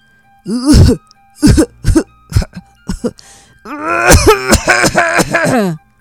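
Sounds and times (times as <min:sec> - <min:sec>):
voice imitating a whale coughing: 0:00.5 - 0:03.2, 0:04.1 - 0:05.8.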